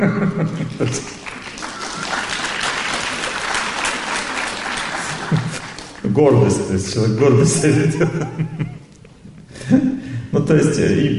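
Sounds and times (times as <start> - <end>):
speech: 0.0 - 1.2, 6.2 - 8.8, 10.5 - 11.1
laughter: 0.0 - 2.2, 7.4 - 9.0
audience clapping: 0.6 - 6.6.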